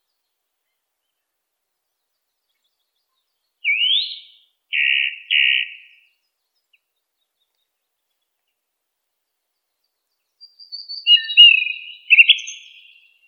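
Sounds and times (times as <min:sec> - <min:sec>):
song thrush singing varied phrases: 0:00.0 - 0:08.6, 0:09.2 - 0:13.2.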